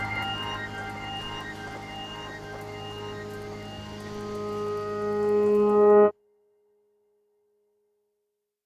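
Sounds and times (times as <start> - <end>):
electronic piano music: 0.0 - 6.1.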